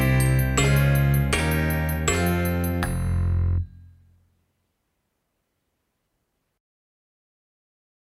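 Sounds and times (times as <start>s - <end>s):
backing music without drums for a drum kit exam: 0.0s - 4.6s.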